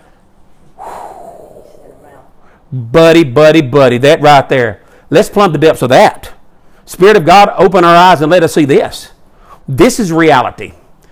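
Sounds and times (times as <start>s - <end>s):
deep collective intake of breath from an audience: 0.7s - 2.7s
speech: 2.7s - 6.3s, 6.9s - 9.1s, 9.7s - 10.8s.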